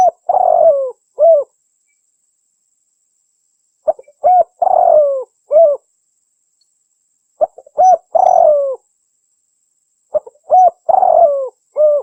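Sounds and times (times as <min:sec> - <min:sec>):
spotted dove cooing: 0:00.0 - 0:01.5, 0:03.9 - 0:05.8, 0:07.4 - 0:08.8, 0:10.1 - 0:12.0.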